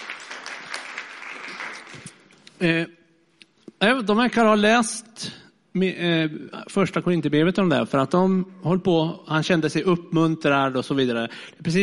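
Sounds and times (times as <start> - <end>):
crowd applause: 0.0 - 2.4
speech: 2.6 - 3.0, 3.8 - 5.1, 5.8 - 11.8.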